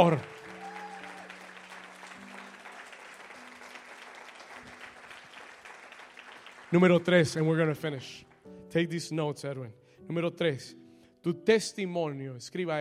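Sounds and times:
speech: 0:00.0 - 0:00.3, 0:06.7 - 0:12.7
audience applause: 0:00.0 - 0:07.7.

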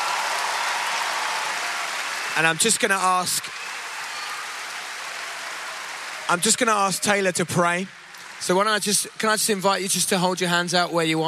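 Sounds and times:
audience applause: 0:00.0 - 0:10.5
speech: 0:02.4 - 0:03.6, 0:06.3 - 0:11.2.

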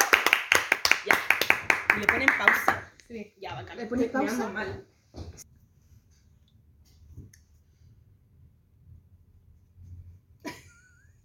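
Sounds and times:
small group clapping: 0:00.0 - 0:03.0
speech: 0:02.0 - 0:04.9.

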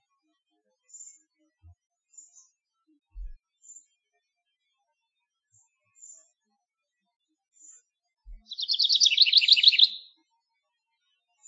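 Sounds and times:
house wren song: 0:08.3 - 0:10.1.

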